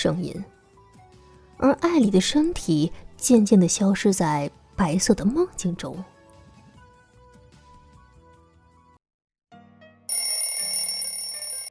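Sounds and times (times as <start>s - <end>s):
speech: 0.0s - 0.6s, 1.6s - 6.1s
alarm clock ringing with metallic bell: 10.1s - 11.6s.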